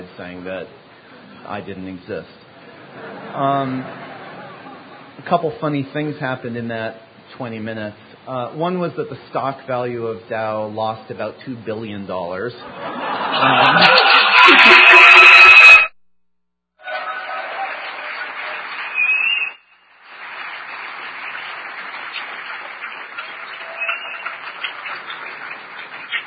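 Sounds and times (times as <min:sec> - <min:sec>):
speech: 0:00.0 - 0:04.1, 0:05.2 - 0:14.9
laughter: 0:02.6 - 0:05.2, 0:12.6 - 0:15.8
audience applause: 0:13.1 - 0:15.9, 0:16.8 - 0:26.2.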